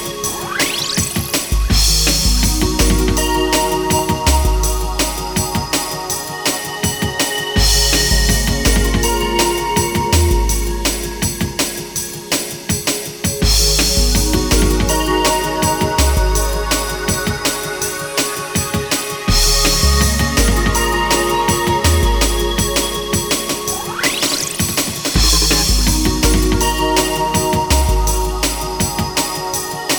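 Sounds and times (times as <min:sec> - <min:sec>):
drum and bass music: 0:00.0 - 0:29.9.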